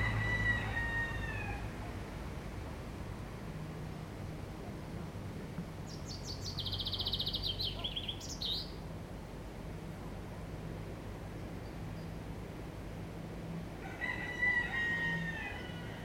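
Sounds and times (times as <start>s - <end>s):
loud motorbike: 0.0s - 0.8s
garden ambience: 0.0s - 16.0s.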